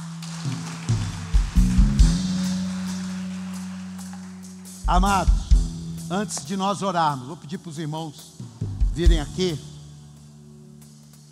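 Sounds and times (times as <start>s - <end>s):
audience applause: 0.0s - 5.4s
speech: 4.9s - 5.4s, 6.1s - 9.7s.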